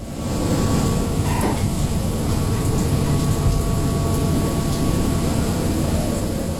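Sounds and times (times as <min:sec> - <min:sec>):
rain beating on the deck of the ship Pelagia in the North Atlantic: 0:00.0 - 0:06.5
deep droning rumble: 0:00.8 - 0:06.0.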